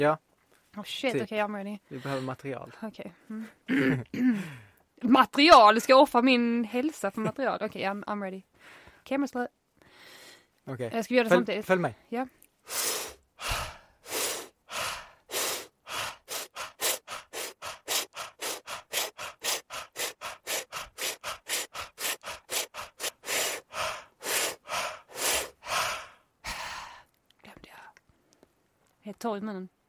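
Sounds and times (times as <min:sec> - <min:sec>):
speech: 0:00.0 - 0:09.6, 0:10.7 - 0:13.5, 0:29.2 - 0:29.8
heavy breathing exercise with loud forceful breaths: 0:12.6 - 0:27.0.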